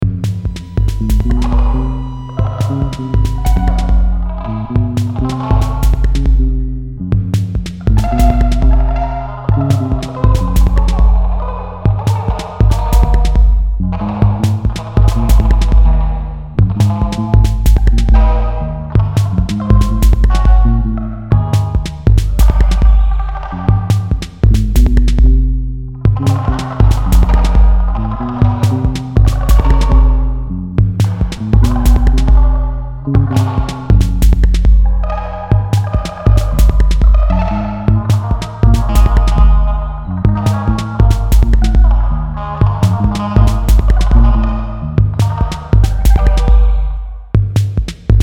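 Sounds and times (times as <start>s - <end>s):
blues music: 0.0s - 48.2s.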